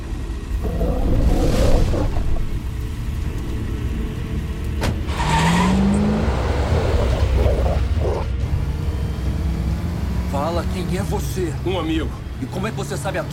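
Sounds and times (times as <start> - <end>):
car driving with steady low engine rumble: 0.0 - 13.3
road noise: 0.0 - 13.3
creaks and mechanical clunks: 2.1 - 5.2
speech: 10.9 - 13.3.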